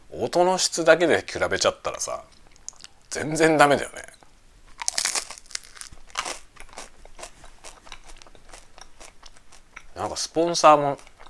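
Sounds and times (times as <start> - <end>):
speech: 0.2 - 2.4, 3.1 - 4.2, 10.0 - 11.1
someone biting into and chewing toasted bread: 4.8 - 9.9.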